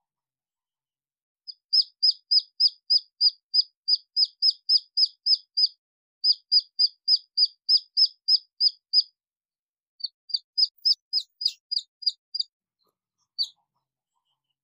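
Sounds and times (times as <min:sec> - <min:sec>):
red junglefowl chick peeping: 0:01.5 - 0:09.1, 0:10.0 - 0:12.5, 0:13.3 - 0:13.6.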